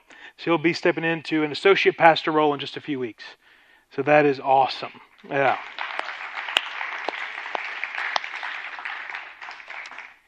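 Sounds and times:
speech: 0.4s - 5.9s
audience applauding: 5.2s - 10.2s.

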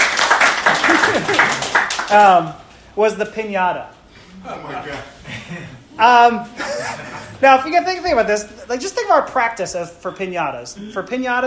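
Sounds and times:
audience applause: 0.0s - 2.3s
laughter: 0.6s - 1.8s, 4.5s - 7.4s
speech: 2.1s - 11.4s.

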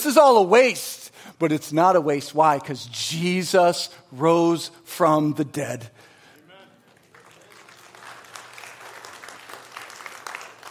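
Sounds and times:
speech: 0.0s - 6.0s
audience clapping hesitantly: 6.8s - 10.6s.

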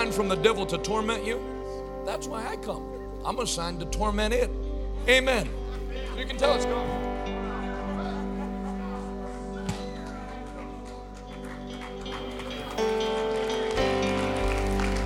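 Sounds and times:
speech: 0.0s - 5.6s, 6.2s - 7.4s
laughter: 5.5s - 12.8s
audience clapping: 7.8s - 15.0s.

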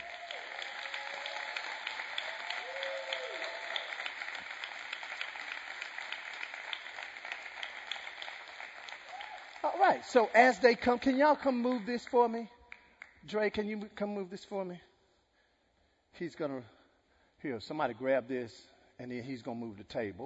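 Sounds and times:
faint voices and whoops: 0.0s - 4.1s
crowd applauding: 0.0s - 12.0s
speech: 9.8s - 12.6s, 13.3s - 14.9s, 16.2s - 16.8s, 17.4s - 20.2s.

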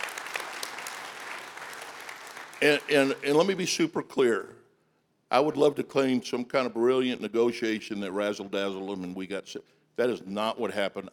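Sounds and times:
audience applause: 0.0s - 3.5s
speech: 2.6s - 4.6s, 5.3s - 11.1s.

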